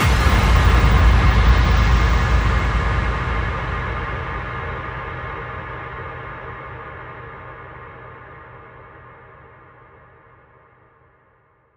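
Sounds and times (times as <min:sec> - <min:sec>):
bass drum FX kicks: 0:00.0 - 0:06.9.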